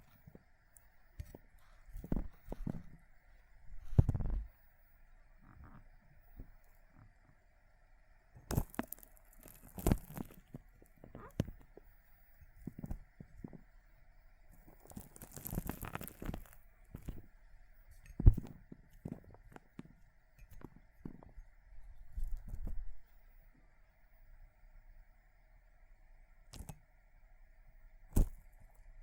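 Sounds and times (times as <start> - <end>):
faint steady hum: 0.0 - 29.0
water beads being crushed: 8.5 - 11.7, 14.6 - 17.3.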